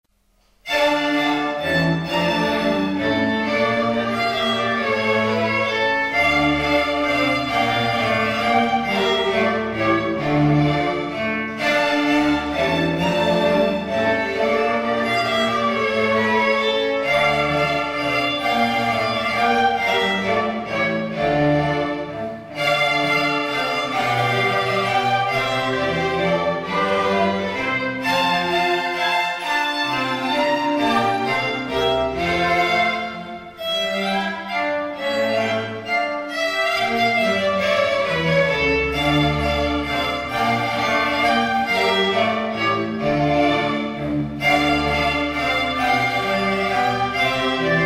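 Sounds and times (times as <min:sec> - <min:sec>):
string ensemble: 0:00.6 - 0:47.8.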